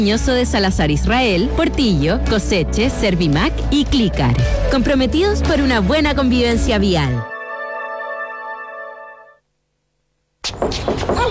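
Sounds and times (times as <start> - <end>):
speech: 0.0 - 7.3
sustained tone: 1.4 - 9.4
knocking on a door: 10.5 - 11.2.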